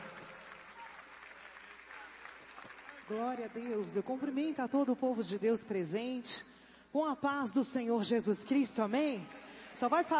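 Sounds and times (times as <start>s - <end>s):
crowd applauding: 0.0s - 4.5s
speech: 3.1s - 10.1s.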